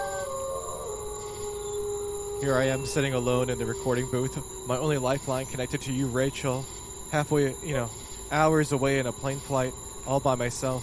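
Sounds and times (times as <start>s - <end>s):
wolves howling: 0.0s - 6.1s
steady hiss: 0.0s - 10.8s
speech: 2.4s - 10.8s.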